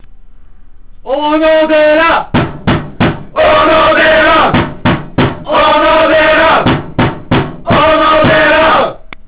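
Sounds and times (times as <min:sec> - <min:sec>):
call: 0:01.6 - 0:08.9.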